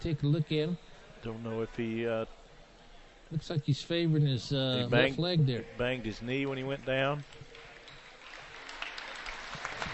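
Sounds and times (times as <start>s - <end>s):
speech: 0.0s - 2.4s, 3.3s - 7.4s
crowd applauding an injured player: 6.5s - 9.9s.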